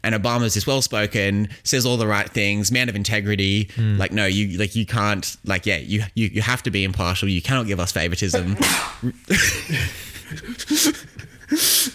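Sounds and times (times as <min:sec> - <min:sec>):
speech: 0:00.0 - 0:11.7
person sneezing: 0:08.4 - 0:09.1
laughter: 0:08.4 - 0:11.9.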